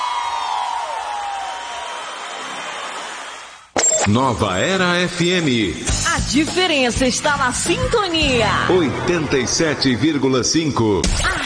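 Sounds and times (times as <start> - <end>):
whoops and shouts: 0.0 - 2.2
crowd roaring and cheering: 0.0 - 3.7
speech: 4.1 - 11.4.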